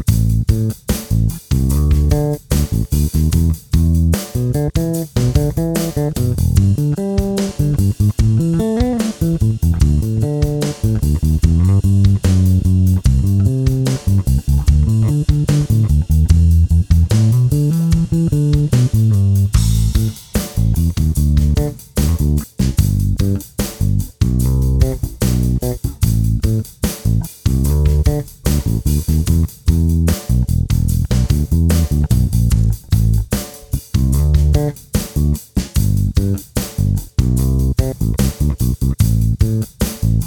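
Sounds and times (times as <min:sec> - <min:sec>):
bass guitar: 0:00.0 - 0:40.2
drum kit: 0:00.0 - 0:40.2.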